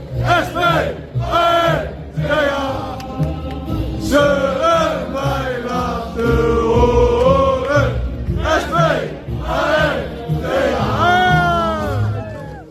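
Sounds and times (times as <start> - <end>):
football supporters singing after a goal: 0.0 - 12.0.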